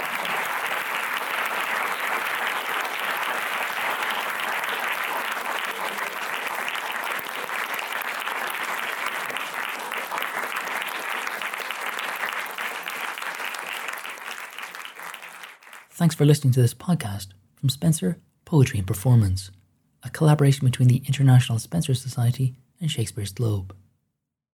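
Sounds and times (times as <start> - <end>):
audience applause: 0.0 - 15.9
speech: 16.0 - 23.8.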